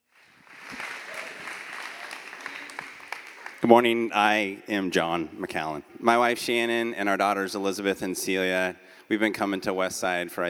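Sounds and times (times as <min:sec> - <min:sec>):
audience applause: 0:00.0 - 0:03.6
speech: 0:03.6 - 0:10.4.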